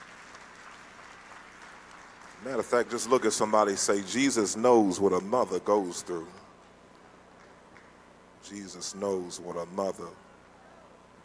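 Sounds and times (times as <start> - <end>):
audience hand clapping: 0.0 - 6.0, 6.6 - 8.0
speech: 2.4 - 6.4, 8.5 - 10.3.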